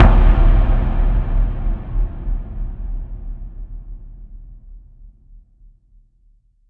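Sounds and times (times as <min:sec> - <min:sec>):
explosions: 0:00.0 - 0:04.1
impact hits: 0:00.0 - 0:04.3.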